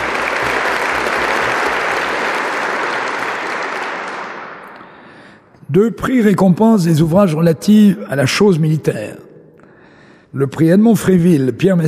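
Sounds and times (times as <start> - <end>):
audience applause for prize winners: 0.0 - 5.1
speech: 5.7 - 9.2, 10.3 - 11.8.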